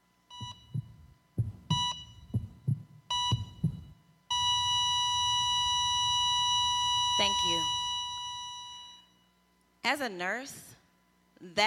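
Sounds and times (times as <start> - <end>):
heartbeat thumps: 0.3 - 6.3
heart monitor beeping then flat tone of asystole: 0.3 - 9.3
speech: 9.9 - 10.7, 11.4 - 11.6.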